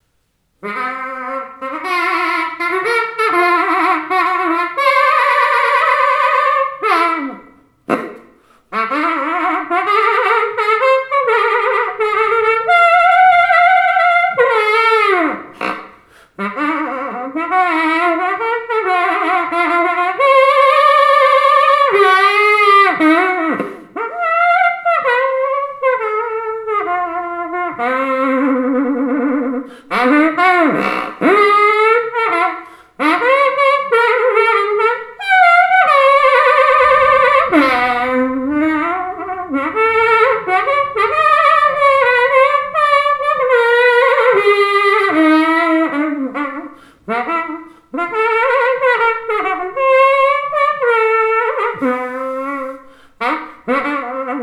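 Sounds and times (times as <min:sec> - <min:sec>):
saxophone tooting in F: 0:00.6 - 0:54.4.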